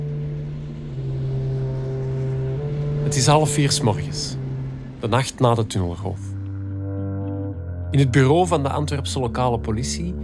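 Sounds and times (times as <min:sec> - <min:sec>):
train passing over a 19th-century railway viaduct: 0:00.0 - 0:06.9
speech: 0:03.1 - 0:04.4, 0:05.0 - 0:06.3, 0:07.9 - 0:10.2.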